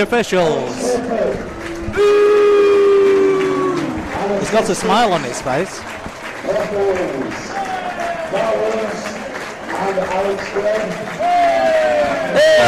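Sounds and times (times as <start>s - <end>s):
speech: 0.0s - 2.4s, 4.3s - 7.5s, 8.3s - 9.1s, 9.8s - 12.6s
large stadium crowd cheering: 0.0s - 12.6s
crowd booing and jeering: 0.6s - 4.8s, 11.2s - 12.6s.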